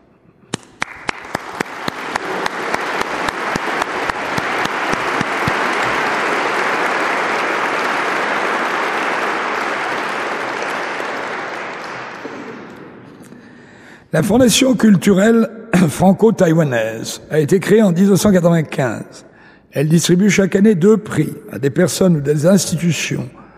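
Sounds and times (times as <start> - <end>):
audience applause from a large crowd: 0.7 - 13.0
speech: 14.1 - 23.4.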